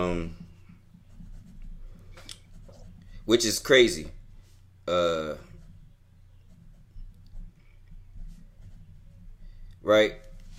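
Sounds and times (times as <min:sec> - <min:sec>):
speech: 0:00.0 - 0:00.4, 0:03.3 - 0:04.2, 0:04.9 - 0:05.5, 0:09.8 - 0:10.5
pen or pencil scratching on paper: 0:00.0 - 0:03.6, 0:05.4 - 0:09.4.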